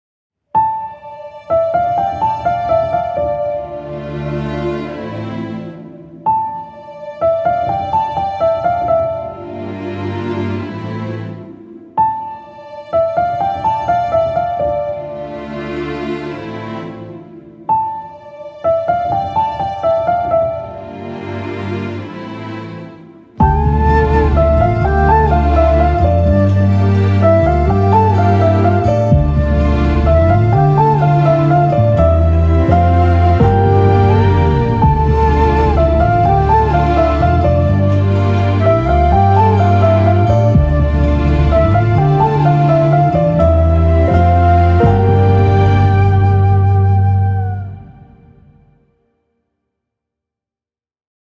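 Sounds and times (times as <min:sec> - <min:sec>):
instrumental music: 0:00.6 - 0:49.0.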